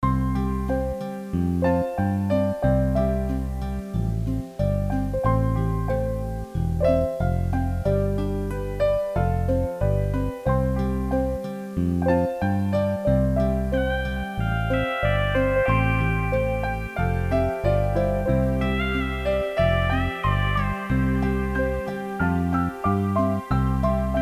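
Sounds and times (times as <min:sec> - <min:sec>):
soft music: 0:00.0 - 0:24.2.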